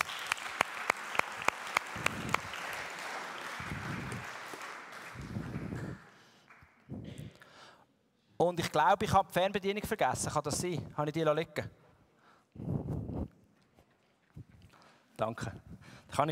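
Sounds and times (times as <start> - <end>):
audience applause: 0.0 - 6.8
sharp hand claps: 0.0 - 7.2
speech: 8.4 - 11.8, 15.2 - 16.3.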